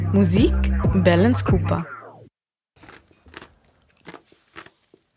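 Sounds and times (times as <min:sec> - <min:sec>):
speech: 0:00.2 - 0:02.0
ice from a Chilcano cocktail being chewed: 0:02.8 - 0:04.9.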